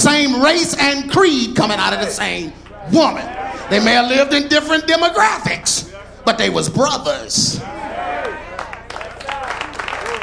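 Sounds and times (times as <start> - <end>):
speech: 0.0 - 7.8
voice or crowd noise: 0.0 - 10.2
audience clapping: 8.2 - 10.2.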